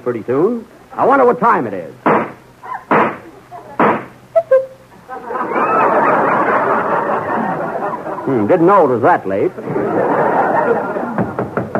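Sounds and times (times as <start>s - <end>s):
speech: 0.0s - 2.0s, 8.3s - 10.1s, 10.7s - 11.2s
laughter: 4.9s - 8.6s, 9.4s - 11.7s
knocking on a door: 11.2s - 11.7s.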